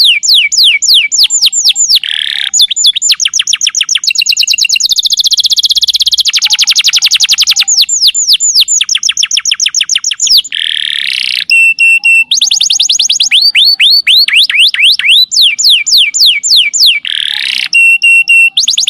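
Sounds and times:
young canary song: 0.0s - 18.8s.

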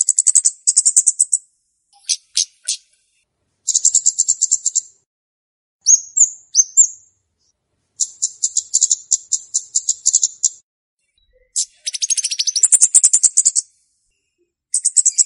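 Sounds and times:
flowerpecker ticking calls: 0.0s - 1.4s, 2.0s - 2.9s, 3.7s - 4.9s, 8.0s - 10.6s, 11.5s - 13.7s, 14.8s - 15.2s.

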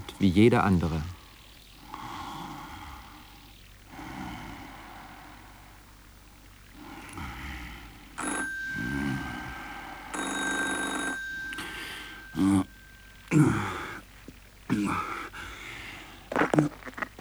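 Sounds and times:
speech: 0.2s - 1.2s
telephone ringing: 8.2s - 14.2s.

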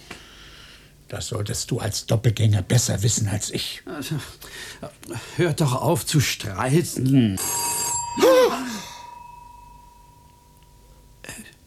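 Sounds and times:
speech: 1.1s - 7.6s, 8.2s - 8.8s
bell ringing: 7.4s - 11.3s.

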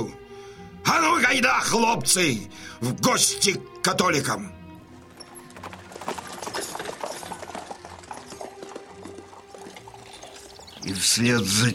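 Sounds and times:
speech: 0.9s - 4.6s, 11.0s - 11.7s
horses of Cossack riders galloping: 4.8s - 11.7s.

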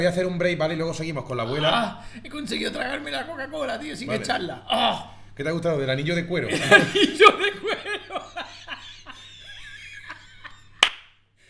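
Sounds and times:
speech: 0.0s - 7.7s
laughter: 6.4s - 10.8s
hand clapping: 10.8s - 11.2s.

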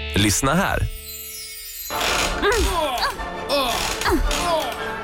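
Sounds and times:
speech: 0.2s - 1.0s
creaking rocking chair: 1.9s - 4.9s.

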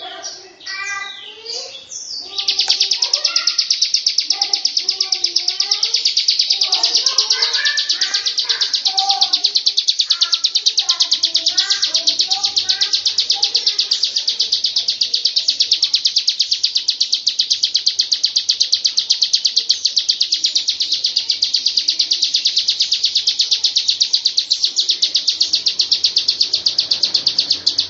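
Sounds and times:
lovebird singing a long ngekek song: 0.0s - 27.8s.

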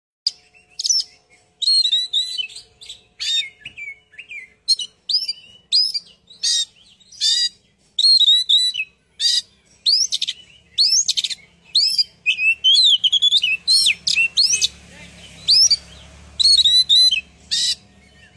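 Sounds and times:
bird chirping and twittering: 0.3s - 18.3s.

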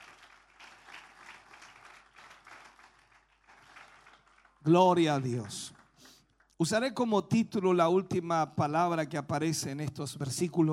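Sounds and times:
congregation applauding in a church service: 0.0s - 6.6s
speech: 4.6s - 5.8s, 6.6s - 10.7s.

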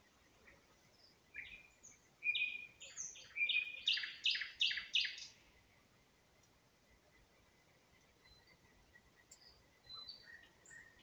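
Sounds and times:
nightingale spring song in Ukraine: 1.4s - 5.4s.

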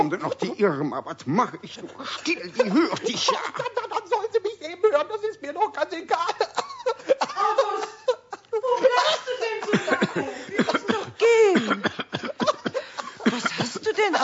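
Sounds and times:
speech: 0.0s - 7.0s, 14.0s - 14.2s
laughter: 1.7s - 4.5s, 6.1s - 14.2s
person coughing after choking on something: 9.6s - 14.0s.

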